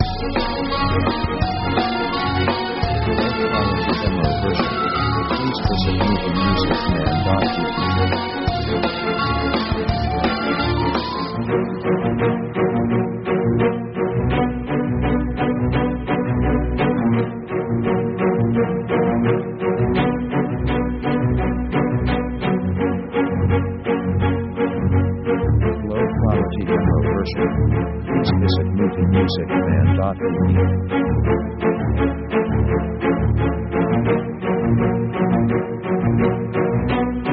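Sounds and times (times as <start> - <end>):
fast strange orchestral music: 0.0 - 37.3.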